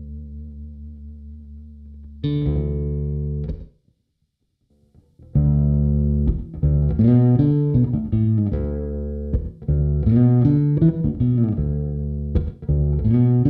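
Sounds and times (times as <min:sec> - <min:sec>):
bass through overdrive pedal with ambiance: 0:00.0 - 0:03.8, 0:05.2 - 0:13.4.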